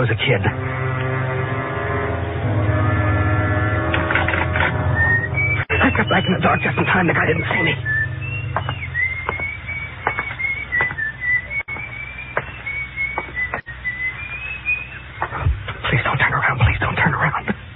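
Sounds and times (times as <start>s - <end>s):
speech: 0.0s - 0.8s, 6.0s - 8.0s
low rumble: 0.0s - 17.0s
man whistling a tune: 4.9s - 15.0s.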